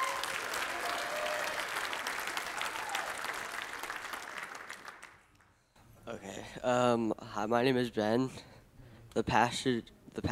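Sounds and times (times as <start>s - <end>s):
audience applause: 0.0s - 5.4s
speech: 6.1s - 8.5s, 9.2s - 10.3s.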